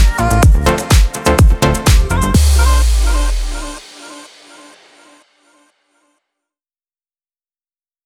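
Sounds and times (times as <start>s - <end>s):
club house electronic techno music: 0.0s - 5.2s.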